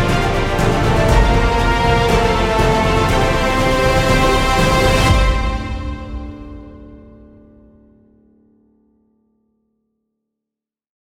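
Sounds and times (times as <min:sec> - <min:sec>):
dramatic adventure music: 0:00.0 - 0:07.7.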